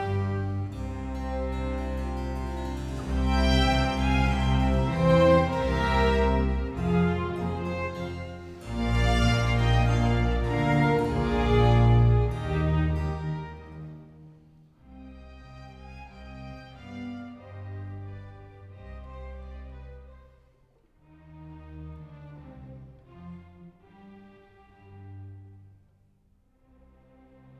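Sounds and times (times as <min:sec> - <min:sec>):
strings and harpsichord playing an andante: 0:00.0 - 0:20.0.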